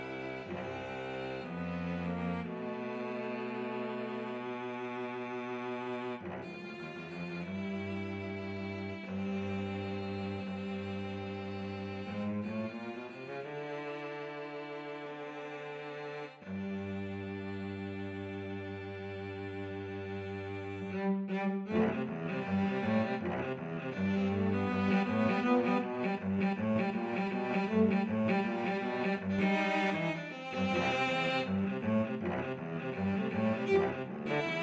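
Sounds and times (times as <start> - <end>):
jazzy birthday cello duet: 0.0 - 34.6.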